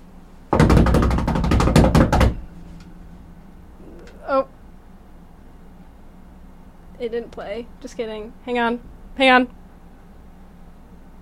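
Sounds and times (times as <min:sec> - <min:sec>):
drum roll: 0:00.5 - 0:04.6
speech: 0:07.0 - 0:09.6.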